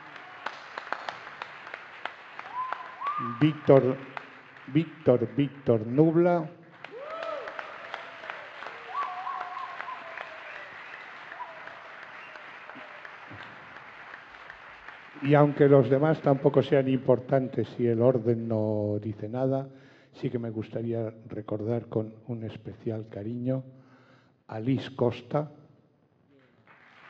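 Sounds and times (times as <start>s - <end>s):
audience applause: 0.0s - 17.1s, 26.6s - 27.0s
speech: 3.2s - 4.1s, 4.7s - 6.6s, 15.2s - 23.8s, 24.5s - 25.6s.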